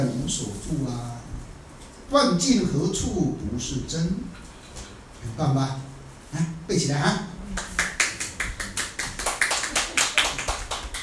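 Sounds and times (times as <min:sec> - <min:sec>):
speech: 0:00.3 - 0:01.3, 0:02.1 - 0:04.5, 0:05.2 - 0:07.3
weak quiet hand clapping: 0:07.6 - 0:11.0.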